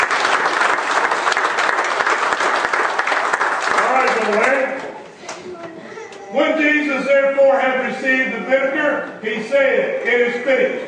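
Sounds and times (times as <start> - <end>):
audience applause: 0.0 - 5.0
speech: 6.6 - 10.8.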